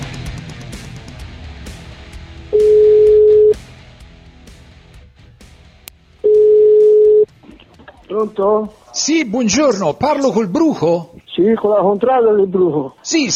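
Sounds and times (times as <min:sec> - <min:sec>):
telephone ringback tone on a call to a contrada in Siena: 0:02.5 - 0:03.6, 0:06.2 - 0:07.3
speech: 0:08.2 - 0:13.3.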